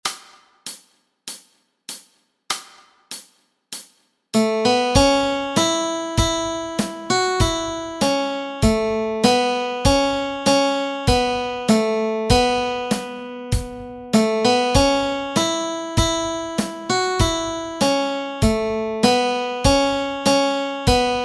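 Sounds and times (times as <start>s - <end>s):
melody: 4.4s - 21.2s.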